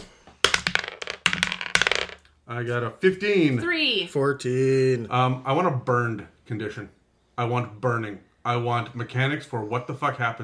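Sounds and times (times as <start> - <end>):
dice being rolled: 0.4 - 2.3
speech: 2.5 - 10.4.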